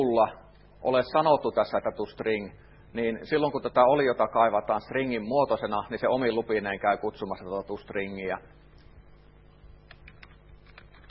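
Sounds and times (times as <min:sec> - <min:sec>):
speech: 0:00.0 - 0:08.6
low steady hum: 0:00.0 - 0:11.0
computer keyboard clicking as code is typed: 0:09.8 - 0:11.0.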